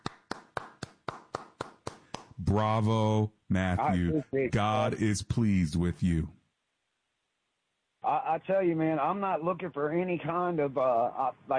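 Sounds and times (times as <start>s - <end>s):
person clapping hands: 0.0s - 2.4s
speech: 2.4s - 6.4s, 8.1s - 11.5s.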